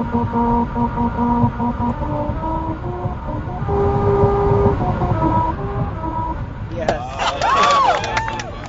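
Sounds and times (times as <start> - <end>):
car tires droning a melody over a musical road: 0.0 - 8.6
low road rumble: 0.0 - 8.6
people cheering and shouting: 6.9 - 8.6.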